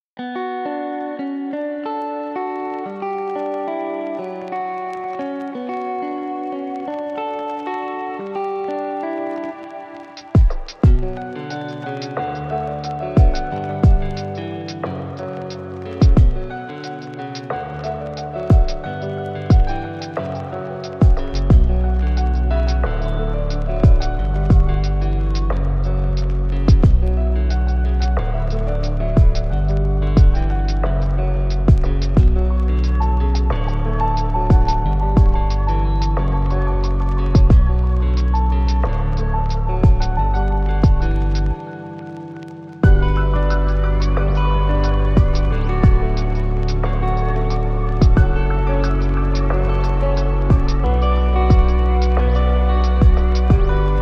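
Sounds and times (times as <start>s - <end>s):
instrumental lofi music: 0.2s - 54.0s.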